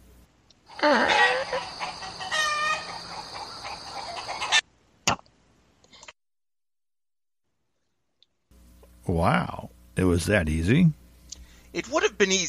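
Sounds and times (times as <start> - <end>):
chickens clucking: 0.9 - 4.7
speech: 9.2 - 11.0, 11.7 - 12.4.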